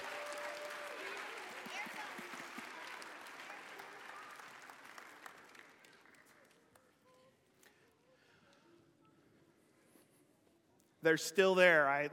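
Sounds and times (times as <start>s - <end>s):
church audience applause: 0.0s - 6.8s
speech: 11.0s - 12.1s.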